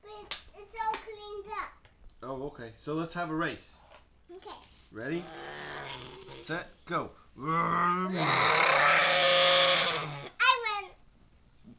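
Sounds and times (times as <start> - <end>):
speech: 2.5 - 3.8, 4.9 - 9.3
child imitating a racing car engine: 7.5 - 10.7.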